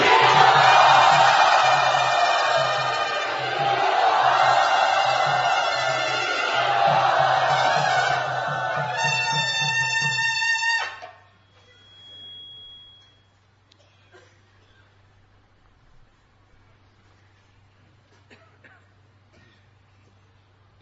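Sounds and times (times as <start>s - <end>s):
low rhythmic pulse: 0.0s - 10.6s
crowd cheering and shouting a welcome at a devotional gathering at Sri Radha: 0.0s - 11.0s.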